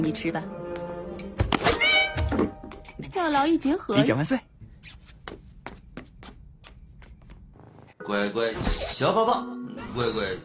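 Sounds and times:
speech: 0.0 - 0.6, 2.3 - 5.0, 8.1 - 10.4
cat meowing: 1.7 - 2.3.

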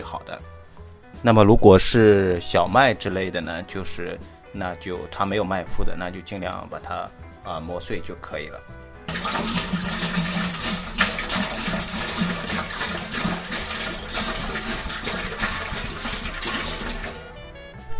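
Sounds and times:
speech: 0.0 - 0.6, 1.2 - 10.3
water being filled into a boiling pot: 9.1 - 17.5.

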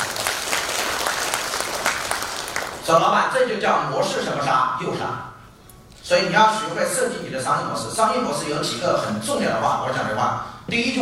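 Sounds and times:
audience applause: 0.0 - 2.9
speech: 2.9 - 5.3, 6.1 - 10.9.

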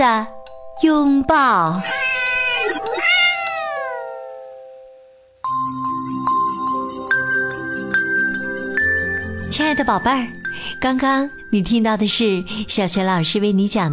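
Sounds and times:
speech: 0.0 - 2.0, 9.6 - 13.9
bright chiming musical jingle: 0.3 - 13.9
cat meowing: 1.8 - 4.2.

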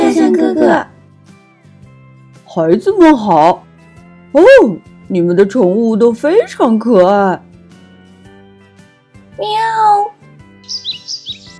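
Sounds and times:
speech: 2.6 - 3.7, 4.3 - 7.5, 9.4 - 10.1
small bird chirping: 10.6 - 11.5.

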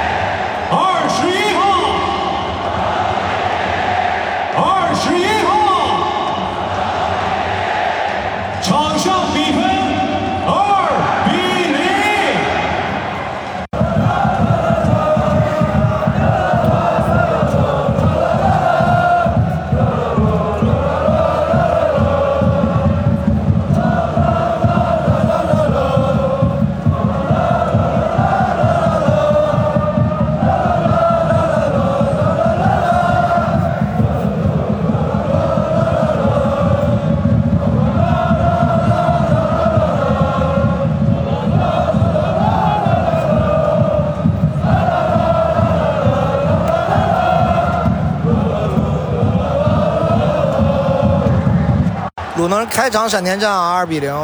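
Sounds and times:
football stadium crowd roaring and chanting: 0.0 - 54.2
rhythmic pounding of drums or clapping: 0.0 - 54.2
speech: 52.7 - 54.2.

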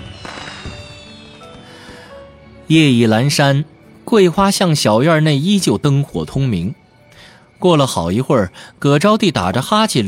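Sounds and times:
fireworks bursting: 0.0 - 2.7
speech: 2.7 - 6.8, 7.6 - 10.0.

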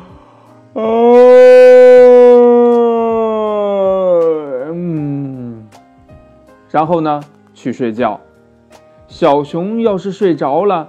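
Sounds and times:
speech: 0.7 - 1.0, 6.7 - 8.2, 9.1 - 10.8
voice imitating a long yawn: 0.7 - 5.7.

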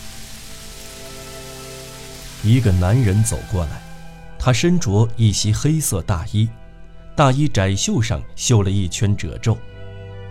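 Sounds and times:
cold sudden downpour of rain: 0.0 - 4.2
speech: 2.4 - 3.8, 4.4 - 6.6, 7.2 - 9.7.

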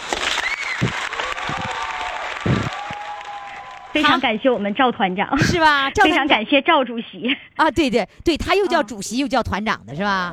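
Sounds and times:
audience applause: 0.0 - 4.4
speech: 4.0 - 10.3.

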